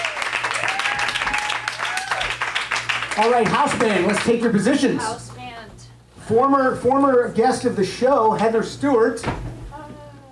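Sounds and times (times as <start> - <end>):
audience whooping: 0.0 - 3.0
audience applause: 0.0 - 4.6
speech: 3.2 - 5.3, 6.3 - 9.4.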